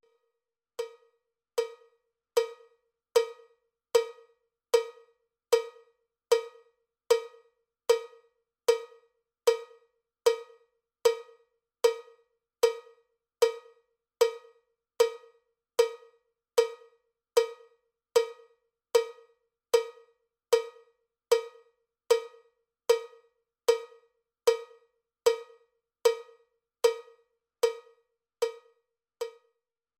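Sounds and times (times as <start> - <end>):
cowbell click track: 0.8 - 29.6.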